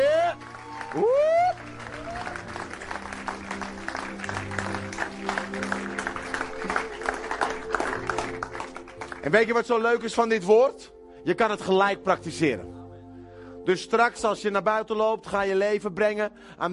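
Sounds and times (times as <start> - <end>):
loud rising vocal whoop: 0.0 - 2.4
audience applause: 0.0 - 9.5
speech: 0.9 - 1.2, 9.2 - 12.8, 13.6 - 16.7.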